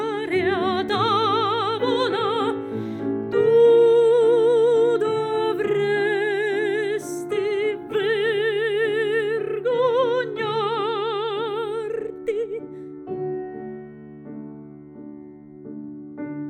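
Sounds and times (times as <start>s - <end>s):
person singing satirical songs: 0.0s - 13.0s
piano: 0.0s - 16.4s.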